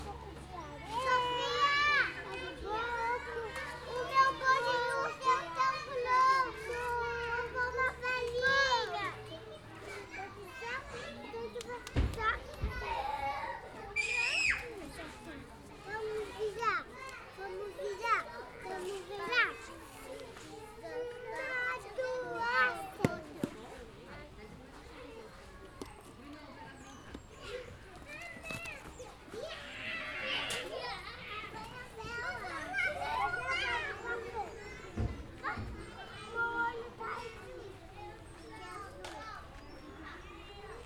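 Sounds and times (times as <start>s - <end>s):
children playing: 0.0s - 40.8s.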